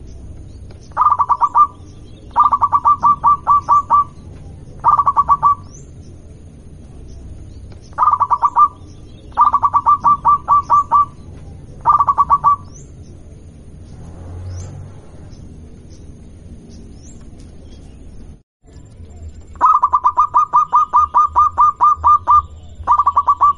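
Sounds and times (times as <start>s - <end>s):
zebra dove of a local strain cooing: 0.9s - 5.8s, 7.9s - 12.8s, 19.6s - 23.5s.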